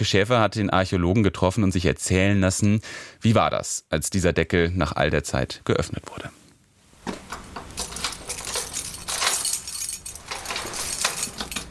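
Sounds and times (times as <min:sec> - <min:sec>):
speech: 0:00.0 - 0:06.4
lock of a church door turning: 0:07.0 - 0:11.6
metal keys jangling: 0:07.1 - 0:11.6.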